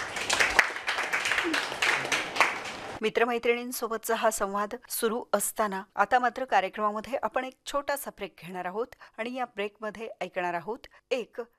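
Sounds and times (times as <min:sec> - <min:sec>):
audience applauding a participant during a live program: 0:00.0 - 0:03.0
speech: 0:03.0 - 0:11.5.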